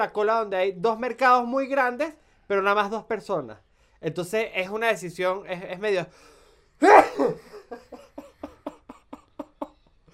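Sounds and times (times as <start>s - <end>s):
speech: 0.0s - 7.9s
sneeze: 6.8s - 7.4s.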